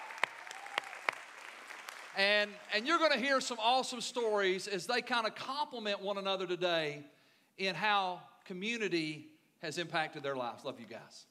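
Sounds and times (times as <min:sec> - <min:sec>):
individual hand claps: 0:00.0 - 0:02.7
faint audience applause: 0:00.0 - 0:03.1
speech: 0:02.2 - 0:11.3.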